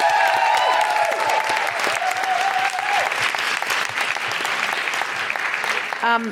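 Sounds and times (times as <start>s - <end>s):
cheering whoops: 0.0s - 3.3s
large audience applauding: 0.0s - 6.3s.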